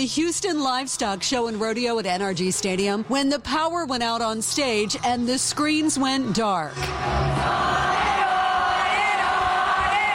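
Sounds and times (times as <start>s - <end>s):
speech: 0.0s - 7.9s
large concert crowd singing along in unison: 6.8s - 10.1s.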